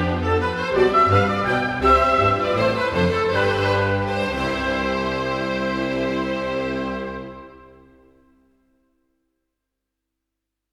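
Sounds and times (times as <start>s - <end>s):
orchestral suite in C major: 0.0s - 8.4s.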